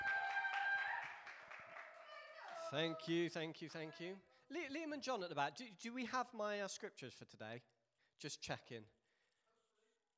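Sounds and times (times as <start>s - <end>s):
round of applause: 0.0s - 3.3s
speech: 2.7s - 9.0s.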